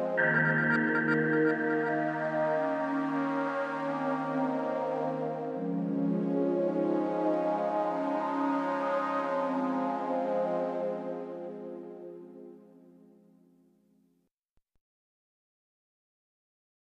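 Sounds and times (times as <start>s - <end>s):
slow good vibes music: 0.0s - 11.5s.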